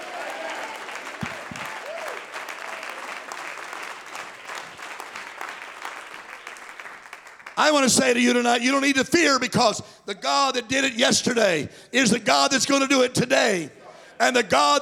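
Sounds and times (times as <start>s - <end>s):
audience clapping: 0.0s - 8.6s
speech: 7.6s - 14.8s.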